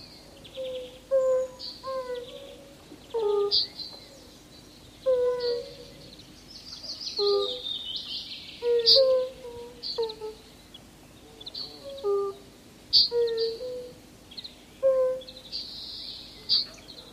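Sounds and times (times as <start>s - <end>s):
European fire-bellied toad calling: 0.6s - 2.5s, 5.0s - 6.2s, 6.8s - 10.5s, 11.4s - 15.5s.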